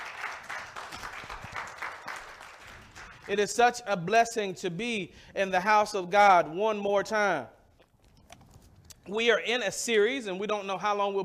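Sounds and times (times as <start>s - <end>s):
audience clapping hands: 0.0s - 3.6s
speech: 3.3s - 7.6s, 9.1s - 11.2s.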